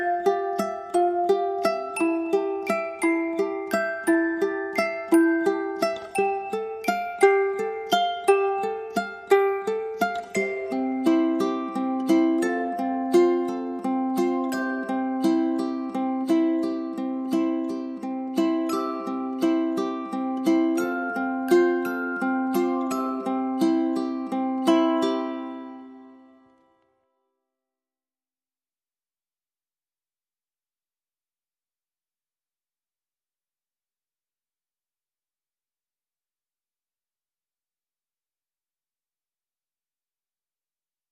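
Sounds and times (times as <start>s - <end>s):
glockenspiel playing a lullaby: 0.0s - 26.8s
ukulele playing a lullaby: 0.0s - 26.9s.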